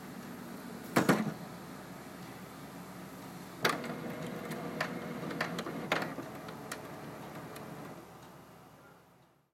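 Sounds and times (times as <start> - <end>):
printer: 3.6 - 8.2.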